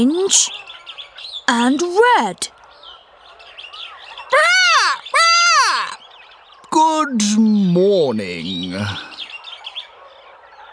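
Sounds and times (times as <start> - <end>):
speech: 0.0 - 0.7, 1.5 - 2.6, 6.8 - 9.1
monkey wailing cries: 4.3 - 6.0.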